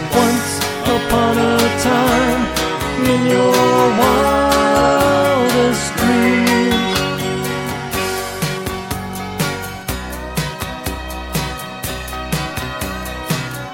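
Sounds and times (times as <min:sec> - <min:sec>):
background vocals: 0:00.0 - 0:07.6
instrumental music: 0:00.0 - 0:13.7.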